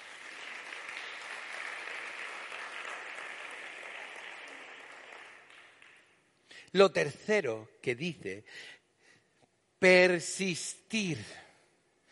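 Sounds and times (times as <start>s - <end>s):
audience applause: 0.0s - 6.2s
speech: 6.7s - 8.8s, 9.8s - 11.4s.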